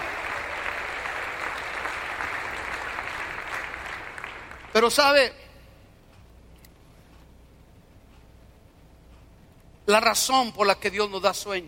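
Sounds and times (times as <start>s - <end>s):
audience applause: 0.0s - 4.8s
speech: 4.8s - 5.4s, 9.9s - 11.6s.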